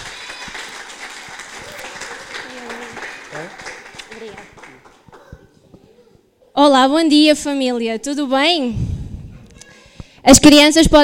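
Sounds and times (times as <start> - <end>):
audience applause: 0.0 - 5.3
speech: 6.6 - 8.8, 10.2 - 11.0.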